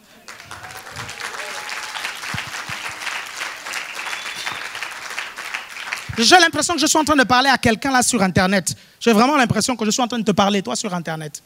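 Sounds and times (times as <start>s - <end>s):
church congregation cheering to greet people: 0.0s - 6.6s
church congregation clapping to greet people: 0.0s - 6.9s
speech: 6.2s - 11.4s.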